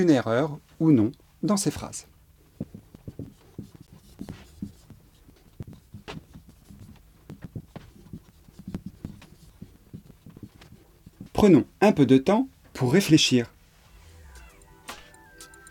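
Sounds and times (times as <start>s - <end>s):
speech: 0.0s - 2.7s, 11.4s - 13.6s
teacher writing sentences by hand: 2.6s - 11.5s.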